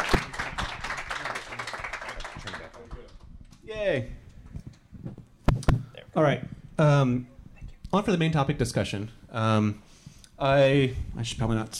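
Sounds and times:
small group clapping: 0.0 - 3.6
speech: 3.8 - 4.2, 6.2 - 7.3, 7.9 - 11.7.

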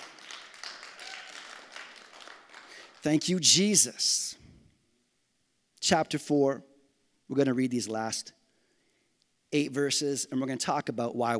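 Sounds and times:
audience clapping: 0.0 - 3.2
speech: 3.0 - 4.4, 5.9 - 6.7, 7.3 - 8.4, 9.5 - 11.3.

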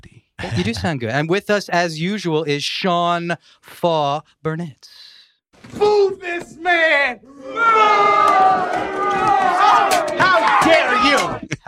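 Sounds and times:
speech: 0.4 - 5.0, 5.7 - 11.4
crowd booing sound effect: 7.2 - 11.4.

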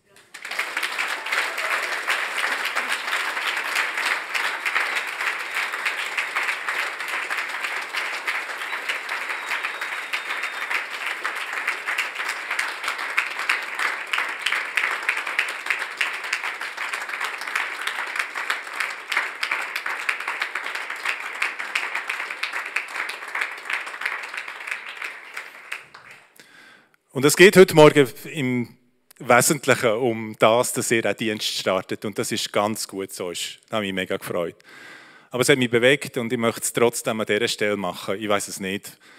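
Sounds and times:
audience applause: 0.0 - 26.4
speech: 27.2 - 39.1.

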